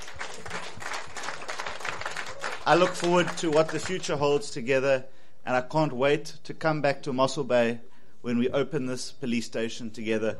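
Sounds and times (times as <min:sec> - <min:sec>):
faint audience applause at an event about a new police station in Mossel Bay: 0:00.0 - 0:04.6
speech: 0:02.6 - 0:10.3.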